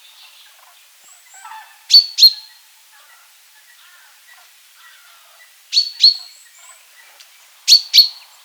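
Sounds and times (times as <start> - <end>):
common chaffinch Fringilla coelebs calling: 1.4 - 2.6, 4.8 - 6.8, 7.7 - 8.3.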